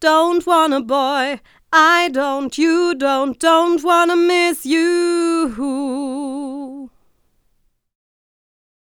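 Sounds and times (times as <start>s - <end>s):
singing: 0.0s - 7.0s.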